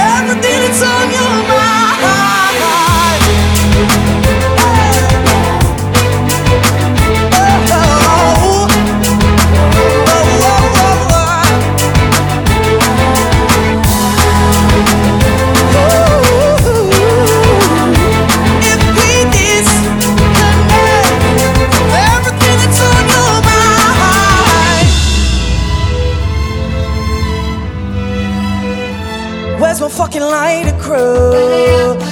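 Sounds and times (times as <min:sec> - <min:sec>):
acoustic orchestral music: 0:00.0 - 0:31.0.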